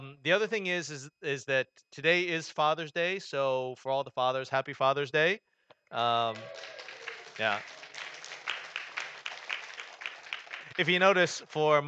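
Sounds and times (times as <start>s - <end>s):
speech: 0.2s - 7.8s, 10.8s - 11.8s
crowd applauding: 6.0s - 11.8s.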